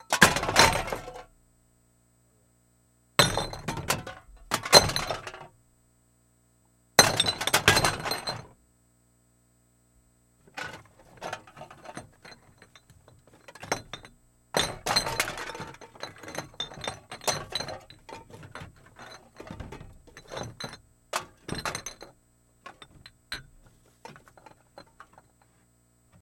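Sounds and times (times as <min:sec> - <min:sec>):
bottles thrown into a plastic trash can: 0:00.1 - 0:01.3, 0:03.2 - 0:05.5, 0:07.0 - 0:08.5, 0:10.5 - 0:22.1, 0:22.7 - 0:25.2.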